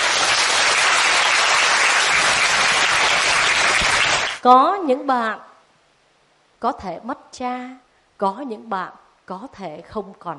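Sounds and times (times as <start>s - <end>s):
large crowd applause: 0.0s - 4.4s
speech: 4.4s - 5.5s, 6.6s - 10.3s.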